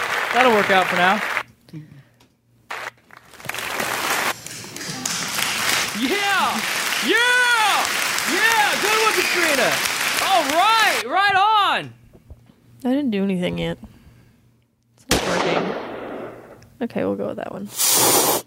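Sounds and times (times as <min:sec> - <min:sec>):
applause sound effect played off a soundboard: 0:00.0 - 0:01.4, 0:02.7 - 0:11.0
speech: 0:00.4 - 0:02.0, 0:06.0 - 0:12.0, 0:12.8 - 0:13.9, 0:15.4 - 0:15.9, 0:16.8 - 0:18.1.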